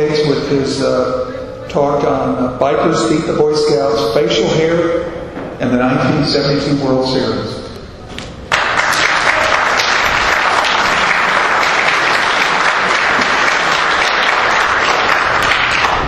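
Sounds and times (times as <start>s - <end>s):
speech: 0.1s - 7.6s
audience applause: 8.5s - 16.0s.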